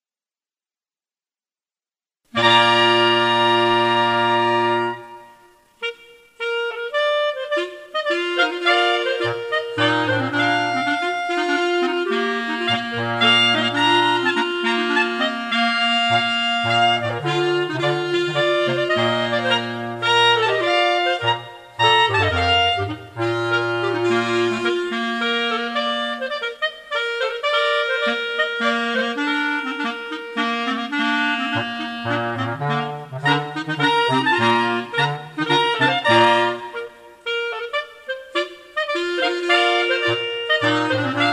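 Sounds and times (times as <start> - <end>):
fanfare: 2.3 - 41.3.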